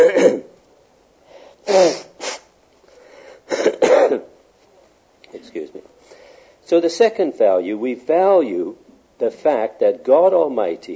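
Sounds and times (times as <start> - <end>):
person with a cold sneezing: 0.0 - 0.5, 1.6 - 2.5, 3.4 - 4.3
speech: 6.7 - 10.9.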